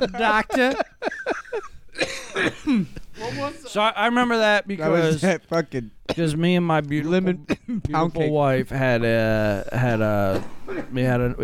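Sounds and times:
speech: 0:00.0 - 0:00.9, 0:02.4 - 0:11.4
laughter: 0:00.0 - 0:03.6
person coughing after smoking weed: 0:02.0 - 0:03.5, 0:10.3 - 0:11.0.

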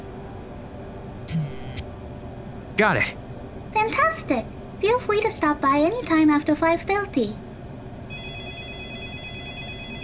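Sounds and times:
low hum: 0:00.0 - 0:10.0
speech: 0:01.3 - 0:01.6, 0:02.8 - 0:03.2, 0:03.8 - 0:07.4
electric doorbell ringing: 0:08.1 - 0:10.0.

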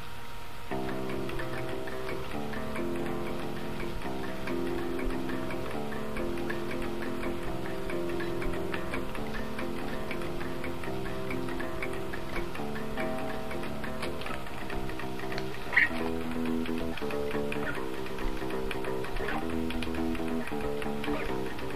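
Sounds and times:
bass practice: 0:00.7 - 0:21.7.

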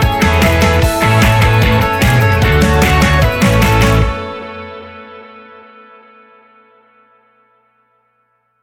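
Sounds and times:
indie pop electro rock music: 0:00.0 - 0:06.4.

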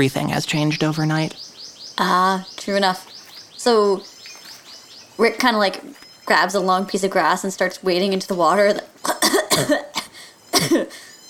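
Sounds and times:
speech: 0:00.0 - 0:04.1, 0:05.2 - 0:08.9, 0:09.6 - 0:09.9, 0:10.6 - 0:11.1
person sputtering and coughing: 0:09.0 - 0:11.1.

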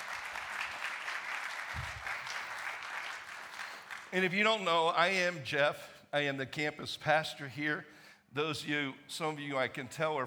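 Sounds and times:
church congregation applauding to welcome a singer: 0:00.0 - 0:04.3
speech: 0:04.1 - 0:10.2.

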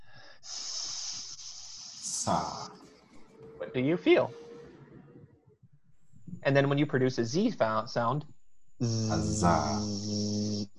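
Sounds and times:
person imitating a sustained hissing S sound: 0:00.4 - 0:02.7, 0:08.8 - 0:10.7
speech: 0:02.3 - 0:02.6, 0:03.7 - 0:04.4, 0:06.4 - 0:10.4.

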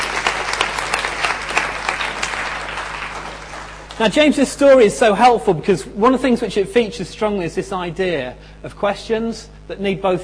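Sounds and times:
audience applause: 0:00.0 - 0:04.2
speech: 0:04.0 - 0:10.2.

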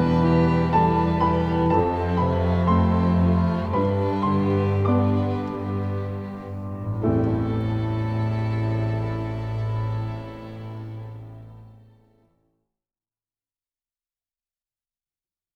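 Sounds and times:
string quartet: 0:00.0 - 0:12.2.

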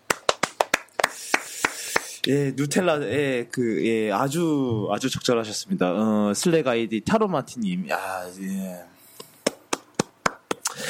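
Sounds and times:
hand claps: 0:00.0 - 0:02.3, 0:09.2 - 0:10.8
speech: 0:02.3 - 0:09.0.

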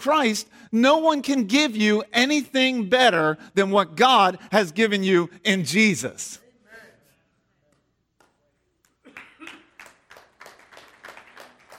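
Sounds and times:
speech: 0:00.0 - 0:06.4
quiet golf clapping: 0:07.7 - 0:11.7.

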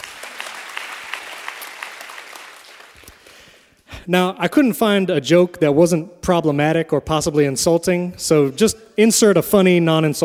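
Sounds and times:
audience applause: 0:00.0 - 0:03.5
speech: 0:04.0 - 0:10.2.

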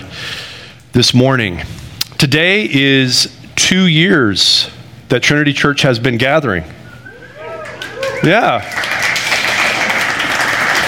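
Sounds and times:
speech: 0:01.0 - 0:06.8, 0:08.2 - 0:08.9
audience applause: 0:07.4 - 0:10.8.

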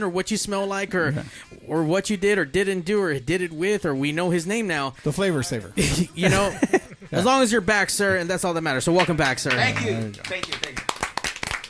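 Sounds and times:
speech: 0:00.0 - 0:10.8
laughter: 0:05.8 - 0:07.6
people clapping: 0:08.9 - 0:11.6.

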